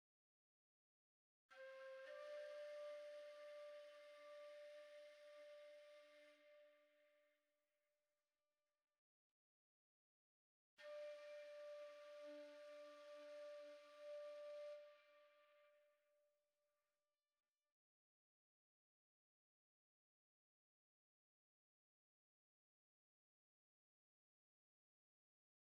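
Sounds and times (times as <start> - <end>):
flute: 1.5 - 7.2, 10.8 - 16.1.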